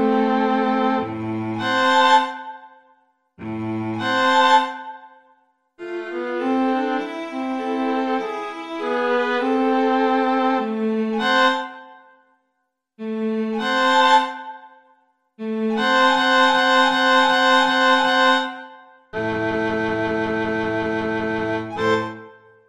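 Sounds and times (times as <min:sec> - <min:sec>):
two violins: 0:00.0 - 0:02.5, 0:03.4 - 0:04.9, 0:05.8 - 0:11.8, 0:13.0 - 0:14.6, 0:15.4 - 0:18.6, 0:19.2 - 0:22.3
cello: 0:00.0 - 0:02.6, 0:03.4 - 0:05.0, 0:05.8 - 0:11.8, 0:13.0 - 0:14.6, 0:15.4 - 0:18.5, 0:19.2 - 0:22.4.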